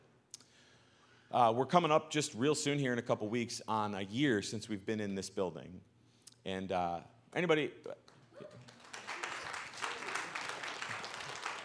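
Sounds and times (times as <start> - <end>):
speech: 1.3 - 8.7
tepid applause: 8.1 - 11.6.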